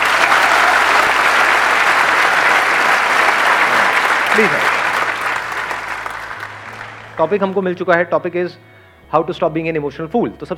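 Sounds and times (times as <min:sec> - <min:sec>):
audience applause at a talk session: 0:00.0 - 0:07.7
speech: 0:04.4 - 0:04.6, 0:07.2 - 0:10.5.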